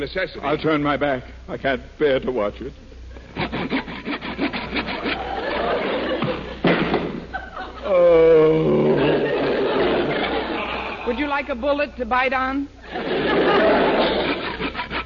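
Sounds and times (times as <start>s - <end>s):
speech: 0.0s - 2.9s, 11.4s - 13.4s
saw cutting a coffee table in half: 3.3s - 5.6s, 14.0s - 15.0s
laughter: 4.9s - 11.3s, 12.8s - 15.0s
thud: 6.2s - 7.2s.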